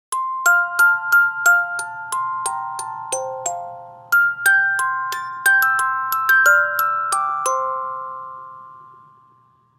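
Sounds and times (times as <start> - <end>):
music box: 0.1 - 9.7.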